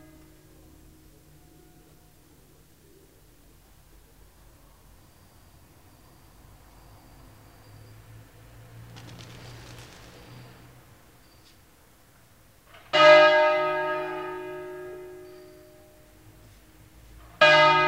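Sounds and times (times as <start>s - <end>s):
church bells ringing for a funeral: 12.9s - 16.0s, 17.4s - 17.8s.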